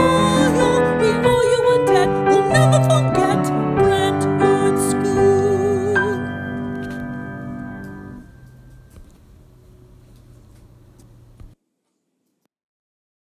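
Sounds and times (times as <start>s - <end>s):
school song with voice: 0.0s - 6.3s.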